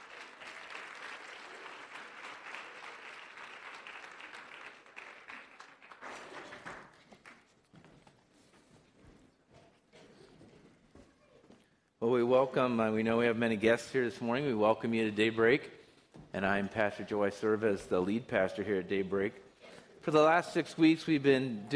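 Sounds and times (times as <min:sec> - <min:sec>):
church congregation applauding a group of children during a service: 0:00.0 - 0:07.5
speech: 0:12.0 - 0:15.8, 0:16.4 - 0:19.4, 0:20.0 - 0:21.7.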